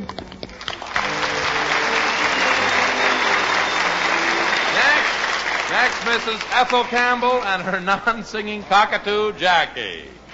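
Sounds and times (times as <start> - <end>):
audience applause: 0.7 - 7.6
speech: 6.2 - 10.2.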